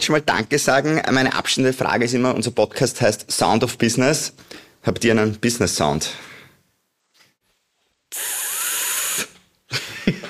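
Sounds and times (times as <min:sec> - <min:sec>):
speech: 0:00.0 - 0:06.4
espresso machine milk steam wand hissing: 0:08.1 - 0:09.4.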